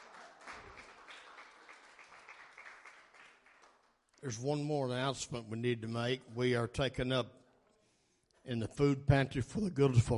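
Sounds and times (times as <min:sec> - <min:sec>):
audience clapping hands in praise: 0:00.0 - 0:04.2
speech: 0:04.2 - 0:07.4, 0:08.5 - 0:10.1.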